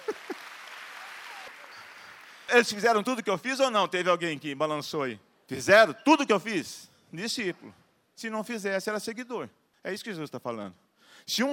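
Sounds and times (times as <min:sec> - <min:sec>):
audience applause: 0:00.0 - 0:02.7
speech: 0:02.5 - 0:11.5.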